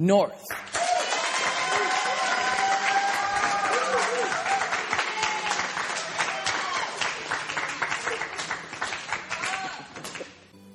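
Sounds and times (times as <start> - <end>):
speech: 0.0 - 0.6
audience applause: 0.5 - 10.4
scattered cheers and voices: 0.7 - 7.0.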